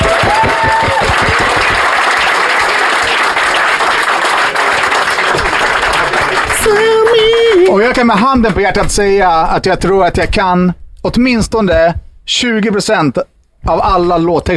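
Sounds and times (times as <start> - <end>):
audience applause: 0.0 - 8.7
speech: 7.9 - 14.5.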